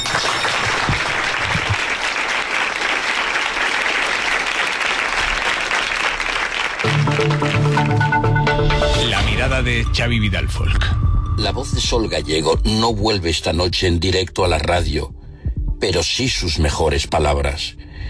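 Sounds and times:
applause: 0.0 - 8.6
speech: 9.6 - 15.2, 15.8 - 17.8.

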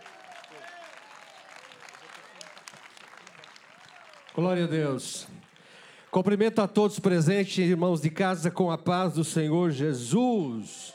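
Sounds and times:
audience applause: 0.0 - 6.4
speech: 4.4 - 5.4, 6.1 - 10.9.

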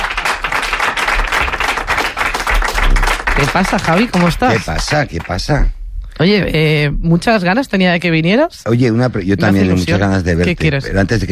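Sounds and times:
audience applause: 0.0 - 5.5
speech: 3.4 - 11.3.

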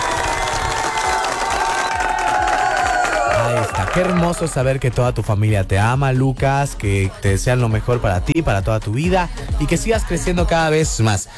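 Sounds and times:
applause and cheering for a birthday boy: 0.0 - 5.2
speech: 4.0 - 11.3.

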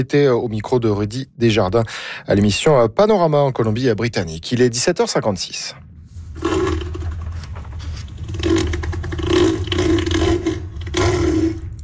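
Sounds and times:
speech: 0.0 - 5.8
elephant seal Neil bellowing: 8.3 - 11.8.

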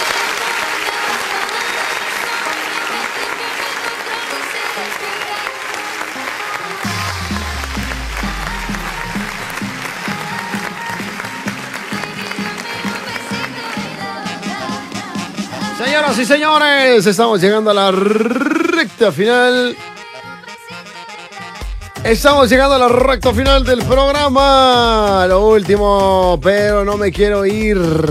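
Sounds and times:
audience applause: 0.0 - 16.8
speech: 16.1 - 19.9, 22.0 - 28.0.

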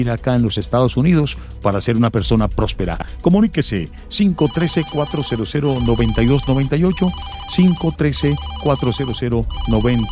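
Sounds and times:
speech: 0.0 - 10.0
telephone ringtone of an incoming call to a call-in show: 4.4 - 10.0.

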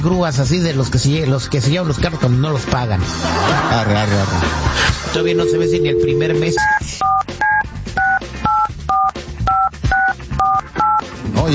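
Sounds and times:
speech: 0.0 - 7.4
laughter: 3.1 - 5.2
phone keypad dialing beeps: 5.2 - 11.0.

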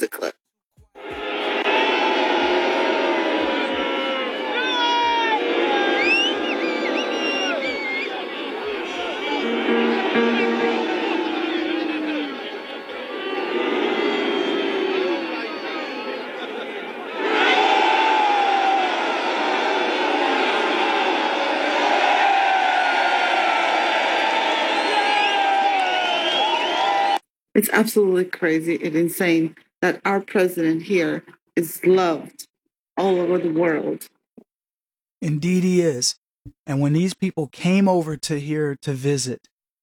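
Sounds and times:
chanting voices: 1.0 - 22.2
overlapping shouts and whoops: 1.0 - 27.2
protest crowd roaring and cheering: 1.0 - 27.2
speech: 27.6 - 34.2, 35.2 - 39.5.

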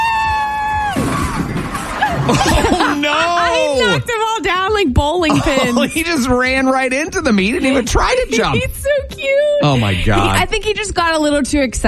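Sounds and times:
long steady high whoop: 0.0 - 1.4
crowd cheering: 0.0 - 4.1
laughter: 1.5 - 4.1, 5.2 - 6.4, 9.4 - 10.5
speech: 3.8 - 11.8.

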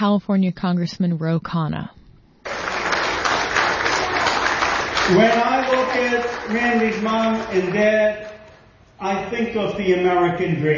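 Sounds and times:
speech: 0.0 - 2.0, 5.1 - 8.3, 9.0 - 10.7
crowd clapping at a political event: 2.5 - 8.4.

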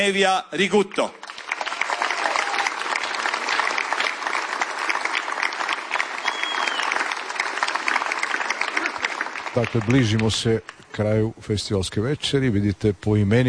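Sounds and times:
speech: 0.0 - 1.2, 9.6 - 13.4
audience applause greeting a singer at a festival evening: 1.0 - 10.8.

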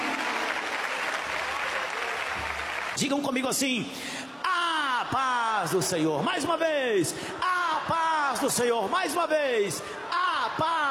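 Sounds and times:
church congregation clapping at a Pentecostal service: 0.0 - 3.1
speech: 3.0 - 4.2, 5.1 - 10.0, 10.6 - 10.8.

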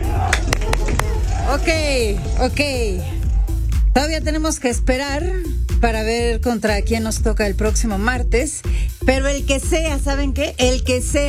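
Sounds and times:
hand claps: 0.2 - 1.5
speech: 1.5 - 3.2, 4.0 - 11.2.

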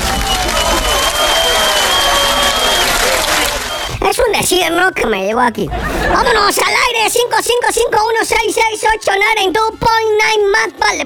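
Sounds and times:
applause: 0.0 - 4.0
speech: 4.5 - 11.0.

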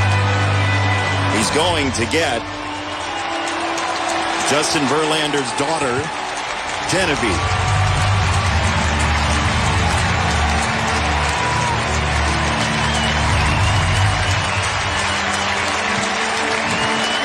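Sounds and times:
audience clapping: 0.0 - 17.2
speech: 1.4 - 2.6, 4.5 - 6.2, 6.9 - 7.6.

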